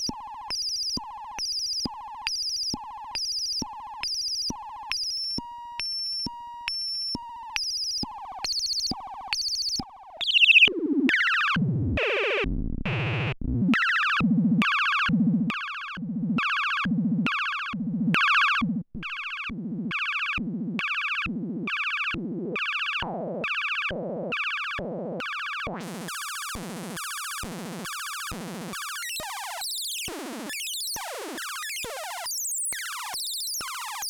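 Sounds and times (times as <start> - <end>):
Noise Toaster noise synthesizer: 10.3 - 32.2.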